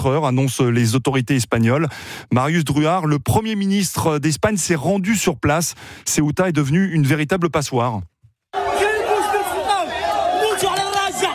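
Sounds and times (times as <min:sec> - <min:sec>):
speech: 0:00.0 - 0:08.1
cries of migrants arriving in the enclave of Ceuta: 0:08.6 - 0:11.3.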